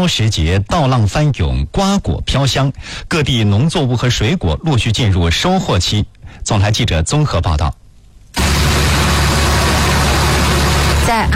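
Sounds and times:
speech: 0:00.0 - 0:07.8, 0:11.1 - 0:11.3
combine harvester running at full power in a ratoon rice field in Langxi County, Anhui: 0:08.4 - 0:11.2.

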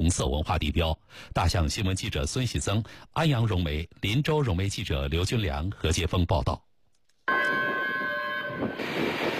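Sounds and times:
speech: 0:00.1 - 0:06.7
long train horn as Hongqiqu passenger train arrives: 0:07.3 - 0:09.3.

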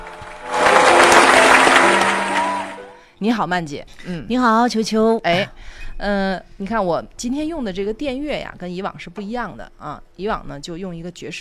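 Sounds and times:
audience applause: 0:00.0 - 0:03.0
speech: 0:03.2 - 0:11.3.

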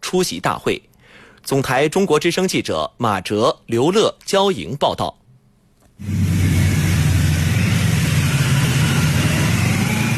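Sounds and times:
speech: 0:00.1 - 0:05.2, 0:06.0 - 0:06.2
ceremonial cars and motorcycle escort departing, engine rumble: 0:06.0 - 0:10.1.

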